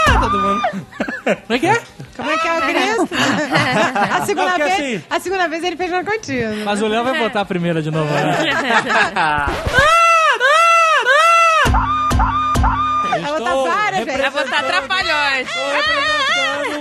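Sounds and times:
mostly female audience shrieking and squealing: 0.0s - 0.8s, 9.8s - 13.3s
laughter: 0.0s - 1.6s, 2.7s - 4.7s, 7.9s - 12.0s, 13.0s - 16.8s
speech: 0.3s - 10.0s, 13.4s - 16.8s.

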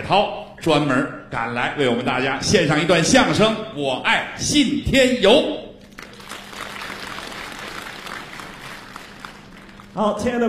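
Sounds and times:
speech: 0.0s - 5.6s, 10.0s - 10.4s
audience applause: 5.9s - 10.0s.

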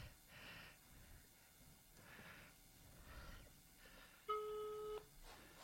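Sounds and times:
telephone line beep tone: 4.3s - 5.1s.

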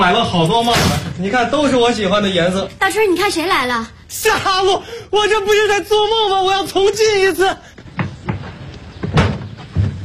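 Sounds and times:
speech: 0.0s - 7.7s
door closing with thud: 9.0s - 10.0s.

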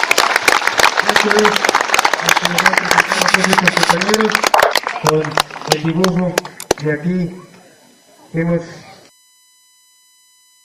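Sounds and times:
applause from comrades at an event with poem recitals: 0.0s - 6.9s
speech: 1.2s - 7.5s, 8.3s - 8.9s.

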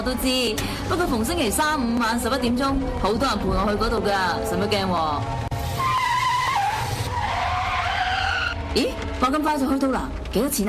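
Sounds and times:
speech: 0.0s - 5.5s, 8.7s - 10.6s
taxi tires skidding: 4.4s - 9.4s.

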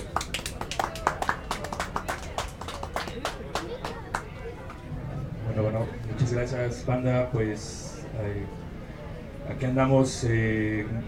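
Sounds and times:
small audience clapping: 0.0s - 4.8s
low murmur of voices: 0.0s - 11.0s
speech: 6.3s - 8.6s, 9.5s - 11.0s.

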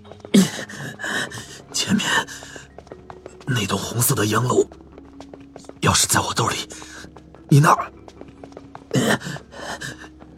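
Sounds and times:
rapid labored breathing with gasping: 0.2s - 2.8s, 8.8s - 10.3s
speech: 1.9s - 2.5s, 3.5s - 4.8s, 6.0s - 6.8s, 7.5s - 7.9s.

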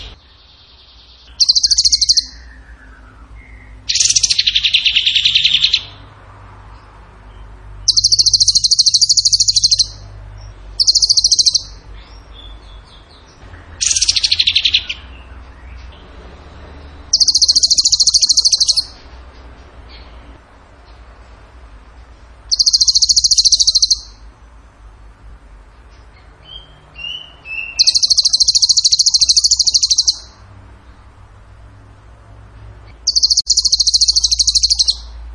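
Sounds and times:
bird trilling: 0.0s - 6.0s, 7.8s - 10.0s, 10.8s - 15.4s, 17.0s - 19.0s, 22.5s - 24.3s, 26.4s - 30.4s, 32.9s - 35.2s.

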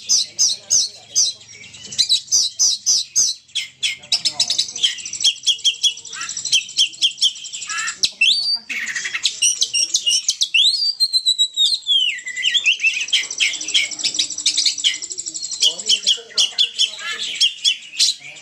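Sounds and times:
Oriental magpie-robin singing in ngobra style: 0.0s - 18.4s.

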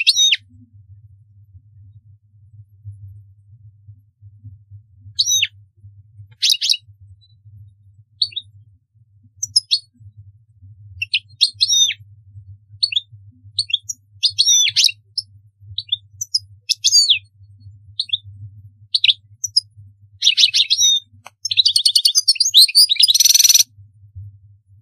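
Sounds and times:
European goldfinch twittering song: 5.2s - 5.5s, 6.4s - 6.8s, 8.2s - 8.4s, 9.4s - 9.9s, 11.0s - 12.0s, 12.8s - 13.0s, 13.6s - 17.2s, 18.0s - 18.2s, 18.9s - 19.6s, 20.2s - 23.6s.

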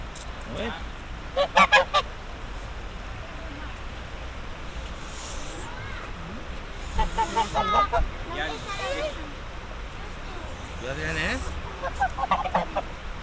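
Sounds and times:
speech: 0.5s - 1.6s
duckling calling: 4.7s - 5.7s, 6.7s - 9.3s, 10.1s - 12.9s.

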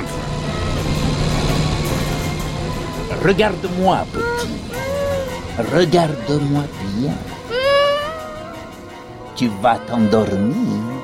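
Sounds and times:
car engine racing at full speed: 0.0s - 5.6s
speech: 3.2s - 4.7s, 5.6s - 7.3s, 9.4s - 11.0s.

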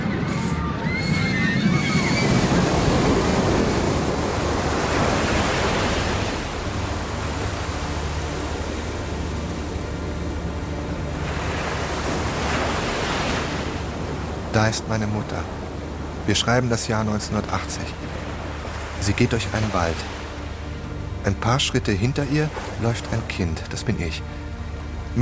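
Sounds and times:
ocean waves washing onto a beach: 0.0s - 25.2s
high-pitched cries: 0.2s - 2.4s
speech: 14.6s - 15.6s, 16.2s - 18.2s, 19.0s - 20.2s, 21.2s - 24.4s.

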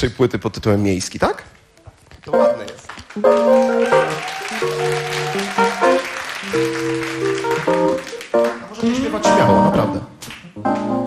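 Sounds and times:
speech: 0.0s - 1.6s, 2.2s - 4.0s
audience clapping: 2.2s - 9.6s, 10.2s - 11.0s.

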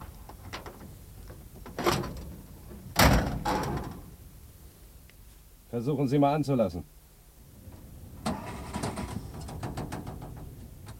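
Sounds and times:
metal clunks as the bonnet of a stalled Studebaker is opened: 0.3s - 4.1s, 7.7s - 10.9s
speech: 5.7s - 6.9s.

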